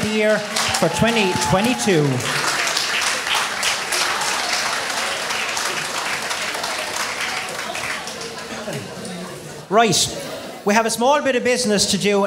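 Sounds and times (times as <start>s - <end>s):
audience cheering and applauding: 0.0s - 8.5s
speech: 0.1s - 2.4s, 9.7s - 12.2s.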